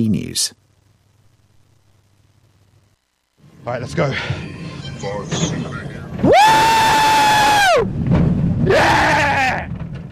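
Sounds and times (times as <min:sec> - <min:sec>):
speech: 0:00.0 - 0:00.6, 0:03.6 - 0:07.0, 0:07.8 - 0:09.7
steady rumbling background: 0:03.5 - 0:10.0
people screaming on a roller coaster: 0:06.2 - 0:08.0, 0:08.6 - 0:09.7.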